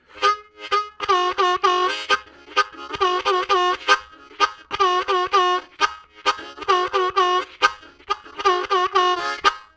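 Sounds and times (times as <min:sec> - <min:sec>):
harmonica riffs: 0:00.0 - 0:09.7.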